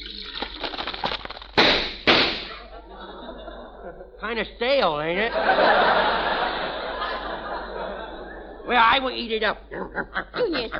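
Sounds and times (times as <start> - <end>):
hot cereal crackling and popping with cream: 0.0 - 2.2
fizzing hiss: 0.0 - 2.5
laughter: 2.5 - 4.2, 5.2 - 8.9, 9.7 - 10.7
speech: 3.9 - 6.4, 8.7 - 10.7.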